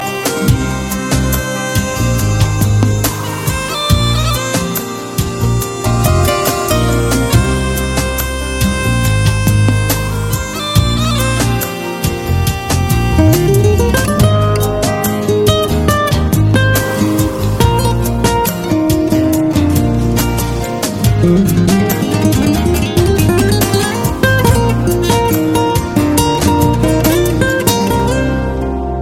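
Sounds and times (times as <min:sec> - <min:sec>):
soft guitar: 0:00.0 - 0:29.0.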